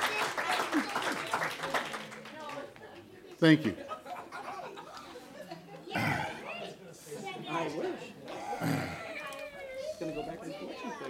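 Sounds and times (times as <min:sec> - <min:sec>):
applause: 0:00.0 - 0:02.8
speech: 0:03.4 - 0:03.9
laughter: 0:03.8 - 0:11.0.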